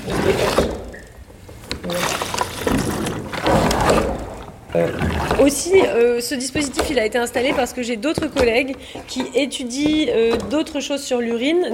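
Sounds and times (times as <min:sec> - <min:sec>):
liquid gurgling through hand pump from can into tank: 0:00.0 - 0:01.2, 0:01.8 - 0:09.2
speech: 0:04.8 - 0:11.7.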